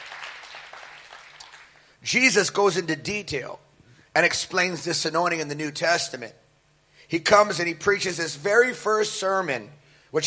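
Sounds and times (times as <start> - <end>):
audience clapping: 0.0 - 1.9
speech: 2.0 - 6.4, 7.1 - 10.2.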